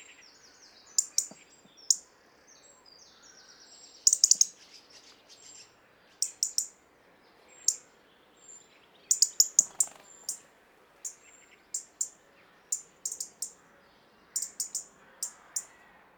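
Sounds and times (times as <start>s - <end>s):
faint birdsong: 0.0s - 16.1s
European robin ticking: 1.0s - 2.0s, 4.1s - 4.6s, 6.2s - 6.8s, 9.1s - 13.6s, 14.4s - 15.7s.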